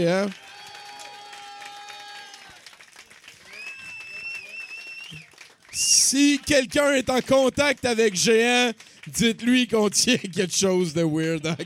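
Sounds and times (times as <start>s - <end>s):
speech: 0.0s - 0.4s, 5.8s - 11.6s
audience applause: 0.0s - 10.4s
crowd cheering: 0.0s - 11.6s
high whoops: 0.3s - 2.7s, 3.4s - 6.5s.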